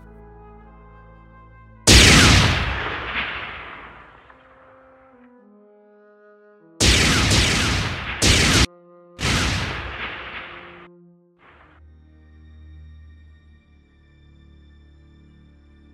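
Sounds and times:
gunfire and blasts in a shooting video game: 1.9s - 4.4s, 6.8s - 10.8s.

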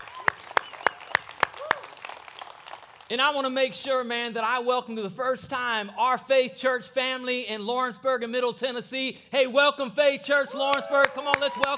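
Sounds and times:
audience clapping hands: 0.0s - 3.2s, 10.7s - 11.7s
speech: 3.1s - 11.7s.

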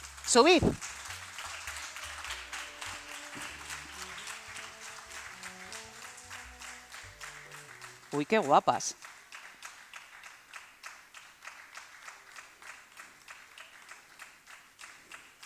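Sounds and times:
low music: 0.0s - 8.4s
crowd applauding: 0.0s - 15.4s
speech: 0.3s - 0.9s, 8.1s - 9.1s.

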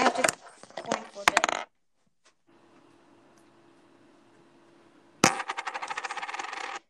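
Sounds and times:
coin flip sound effect: 0.2s - 1.7s, 5.2s - 6.8s.

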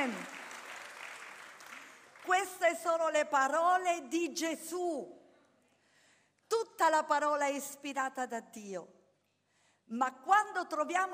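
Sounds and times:
audience applauding: 0.0s - 2.3s
speech: 2.4s - 5.2s, 6.8s - 9.0s, 9.9s - 11.1s.

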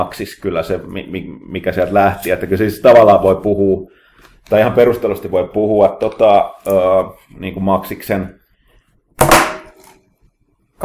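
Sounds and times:
speech: 0.0s - 8.4s
mobile phone dropping onto a hard surface: 9.2s - 10.0s.

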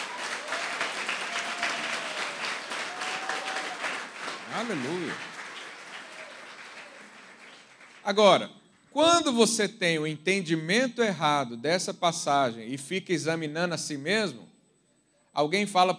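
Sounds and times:
audience applauding: 0.0s - 8.3s
speech: 4.6s - 5.3s, 8.0s - 14.5s, 15.4s - 15.9s.

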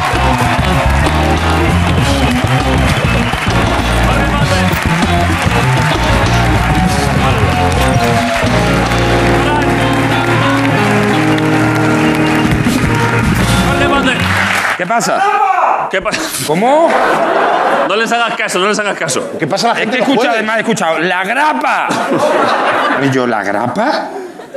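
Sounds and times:
musical tones: 0.0s - 14.6s
studio audience applause: 0.0s - 15.2s
speech: 14.9s - 24.2s
laughter: 16.0s - 18.6s, 19.7s - 20.7s, 21.6s - 24.5s.

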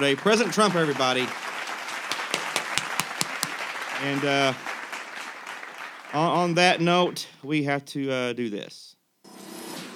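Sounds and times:
speech: 0.0s - 1.5s, 4.0s - 4.7s, 6.1s - 9.0s
hand claps: 0.0s - 6.6s
hiss: 0.2s - 9.2s.

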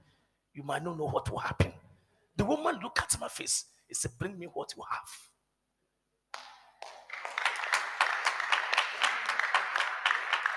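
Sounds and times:
speech: 0.6s - 1.8s, 2.4s - 5.3s
audience clapping: 6.3s - 10.5s.

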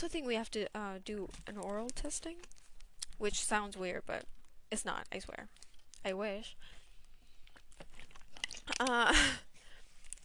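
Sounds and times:
speech: 0.0s - 2.6s, 3.2s - 6.8s, 8.7s - 9.5s
person drinking water: 6.9s - 10.2s.

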